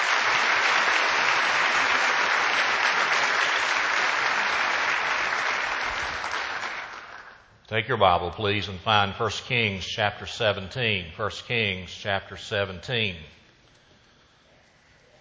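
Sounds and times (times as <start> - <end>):
audience applause: 0.0 - 7.4
speech: 7.7 - 13.4.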